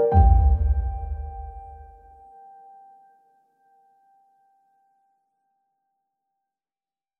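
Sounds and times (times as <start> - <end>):
cinematic background music: 0.2 - 2.0.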